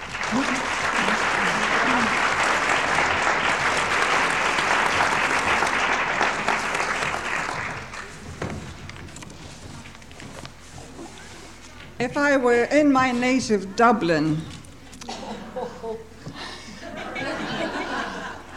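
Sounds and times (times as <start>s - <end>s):
audience applause welcoming a speaker at a theology talk: 0.0s - 8.3s
laughter: 0.1s - 6.7s, 15.1s - 18.5s
speech: 12.0s - 14.5s.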